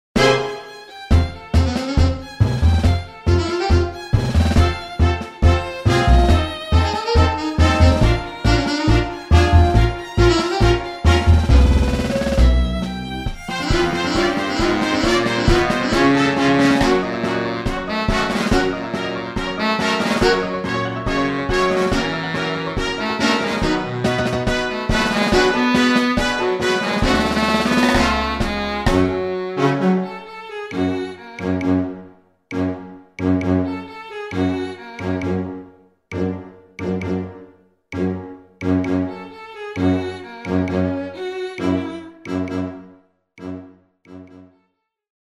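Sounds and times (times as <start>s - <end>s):
tango music: 0.2s - 43.0s.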